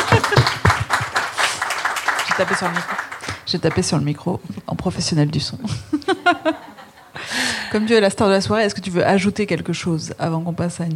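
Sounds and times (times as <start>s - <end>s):
laughter: 0.0s - 1.6s, 5.7s - 7.4s
audience applause: 0.0s - 3.9s
speech: 2.4s - 6.6s, 7.7s - 10.9s.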